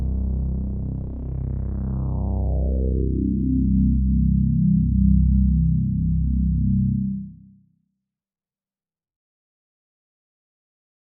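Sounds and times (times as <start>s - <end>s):
modular synth bass: 0.0s - 7.4s.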